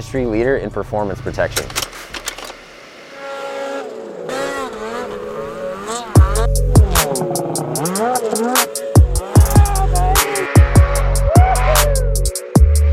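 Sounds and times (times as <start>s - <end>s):
speech: 0.0s - 1.9s
side-by-side UTV engines running near a tent at the Heyday event: 3.2s - 12.9s.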